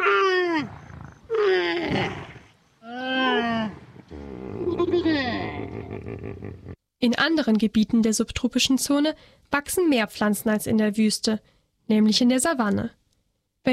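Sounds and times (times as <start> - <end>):
camels at a waterhole: 0.0 - 6.8
speech: 7.1 - 13.0.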